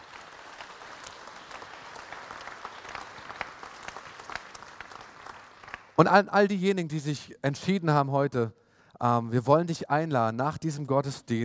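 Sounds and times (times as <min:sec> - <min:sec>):
applause: 0:00.0 - 0:06.0
speech: 0:06.0 - 0:11.4.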